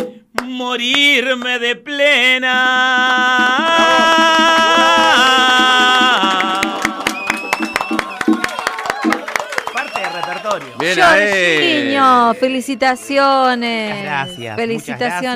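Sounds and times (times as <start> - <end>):
audience clapping hands: 0.0 - 1.7, 3.0 - 12.3
speech: 0.5 - 5.3, 10.8 - 15.3.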